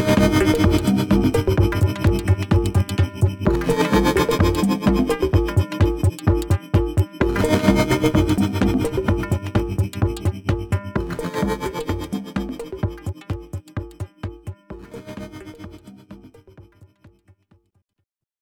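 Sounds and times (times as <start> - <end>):
dry and wet drums: 0.0 - 17.6.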